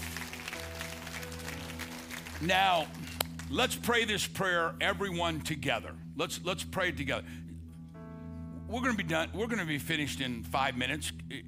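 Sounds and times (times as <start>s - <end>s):
audience clapping: 0.0s - 3.8s
speech: 2.4s - 7.4s, 8.7s - 11.4s.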